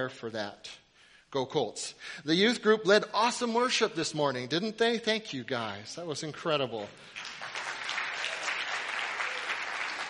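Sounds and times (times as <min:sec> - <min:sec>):
speech: 0:00.0 - 0:07.4
large group applauding: 0:06.9 - 0:10.0.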